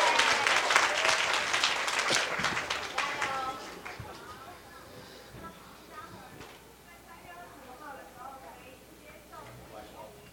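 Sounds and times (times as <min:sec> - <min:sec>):
audience applause: 0:00.0 - 0:04.2.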